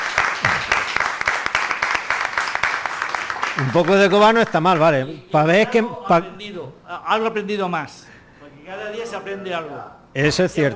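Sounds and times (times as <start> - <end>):
audience applause: 0.0 - 4.9
speech: 3.6 - 8.1, 8.7 - 10.7.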